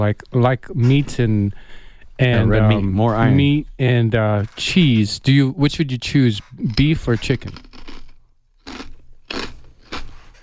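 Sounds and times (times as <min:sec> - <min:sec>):
speech: 0:00.0 - 0:07.7
crunchy food being chewed: 0:06.6 - 0:10.4.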